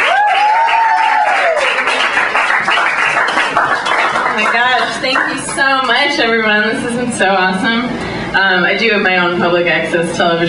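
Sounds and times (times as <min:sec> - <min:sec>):
rising and falling whoop or whistle: 0:00.0 - 0:01.8
audience applause for comedian: 0:00.0 - 0:06.0
speech: 0:05.0 - 0:10.4.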